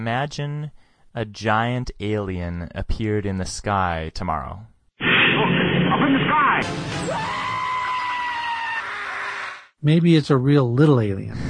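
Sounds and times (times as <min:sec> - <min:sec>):
speech: 0:00.0 - 0:04.7, 0:05.4 - 0:07.3, 0:09.8 - 0:11.4
people screaming at a giant alien in the sky: 0:06.8 - 0:09.7.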